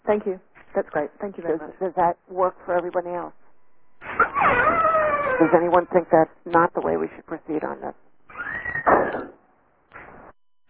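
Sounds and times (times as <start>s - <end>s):
speech: 0.1s - 3.4s, 5.4s - 8.0s
creaking door that needs oiling: 4.0s - 6.0s, 8.3s - 10.2s.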